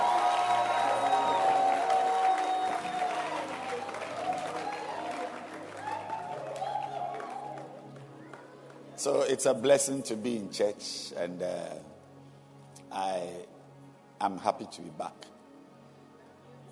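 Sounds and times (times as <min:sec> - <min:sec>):
audience clapping and cheering: 0:00.0 - 0:09.2
speech: 0:09.0 - 0:11.9, 0:13.0 - 0:13.5, 0:14.2 - 0:15.3.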